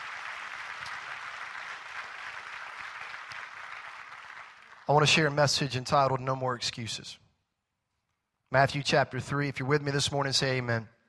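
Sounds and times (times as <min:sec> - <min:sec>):
audience clapping hands: 0:00.0 - 0:05.4
speech: 0:04.9 - 0:07.2, 0:08.5 - 0:11.0.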